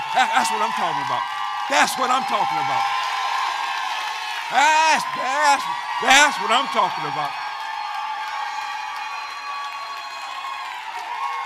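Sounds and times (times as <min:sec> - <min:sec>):
church audience applauding: 0:00.0 - 0:11.4
speech: 0:00.2 - 0:03.0, 0:04.5 - 0:07.4.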